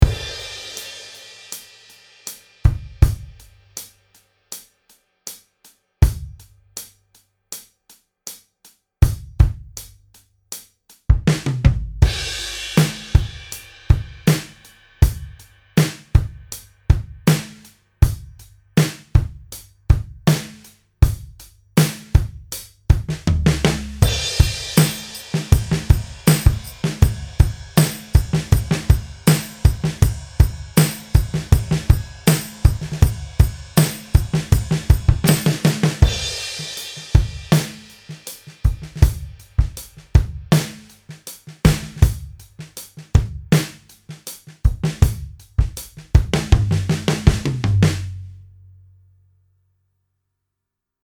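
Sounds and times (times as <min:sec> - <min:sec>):
drum solo: 0:00.0 - 0:04.6, 0:06.0 - 0:07.6, 0:09.0 - 0:48.5.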